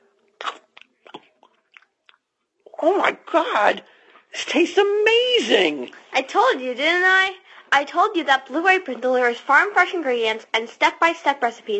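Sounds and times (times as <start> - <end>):
chewing crunches of an Italian sandwich: 0.4 - 2.3
speech: 2.8 - 11.7.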